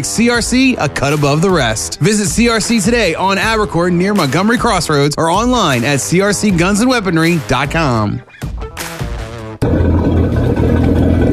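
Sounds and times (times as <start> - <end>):
speech: 0.0 - 8.5
boat engine sputtering and failing to start: 9.6 - 11.3.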